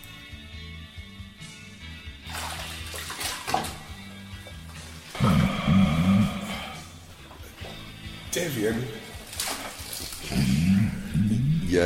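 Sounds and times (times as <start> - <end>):
stomach rumbling: 5.1 - 6.8, 10.0 - 11.8
speech: 8.4 - 9.0.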